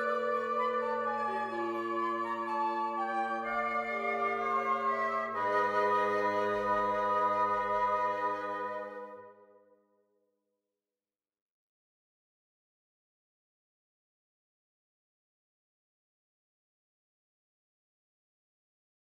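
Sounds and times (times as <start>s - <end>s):
fugue in 74 equal divisions of the octave: 0.0s - 9.3s.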